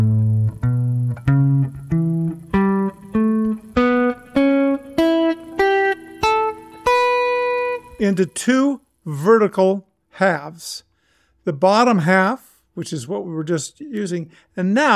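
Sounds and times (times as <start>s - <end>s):
guitar playing a scale: 0.0s - 8.7s
speech: 8.2s - 14.9s.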